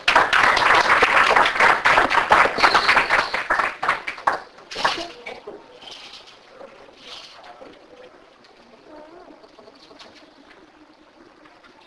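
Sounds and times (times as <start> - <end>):
audience applause welcoming a Texas poet laureate: 0.0 - 5.2.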